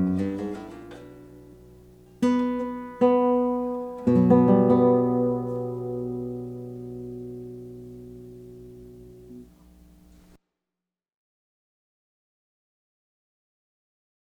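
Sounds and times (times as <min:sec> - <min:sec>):
flamenco guitarist playing a falseta: 0:00.0 - 0:10.4.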